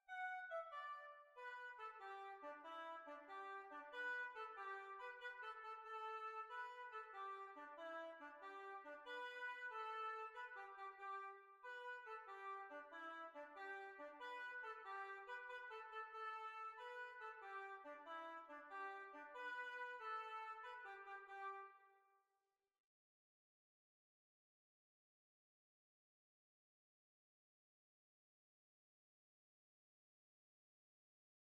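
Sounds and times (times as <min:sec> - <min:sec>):
oboe playing dance music: 0:00.0 - 0:21.6.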